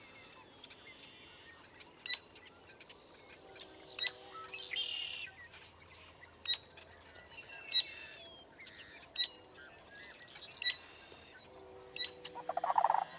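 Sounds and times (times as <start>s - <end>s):
blackbird: 0.0s - 13.1s
train: 0.0s - 13.1s
frog: 12.4s - 13.1s.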